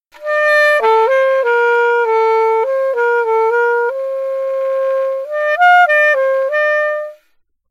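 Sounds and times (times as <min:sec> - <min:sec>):
alto saxophone: 0:00.1 - 0:07.4.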